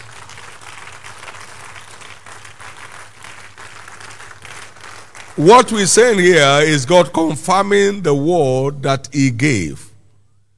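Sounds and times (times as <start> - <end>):
crowd applauding: 0.0 - 6.8
speech: 5.4 - 9.8.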